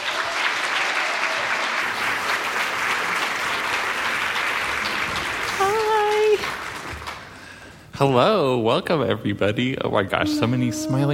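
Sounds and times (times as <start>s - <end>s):
audience applause welcoming two speakers at an evening talk: 0.0s - 7.7s
speech: 8.0s - 11.1s.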